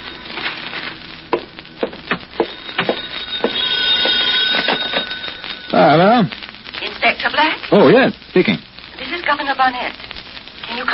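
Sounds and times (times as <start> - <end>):
telephone bell ringing: 2.4 - 6.2
speech: 7.2 - 8.7, 9.3 - 10.1, 10.7 - 10.9.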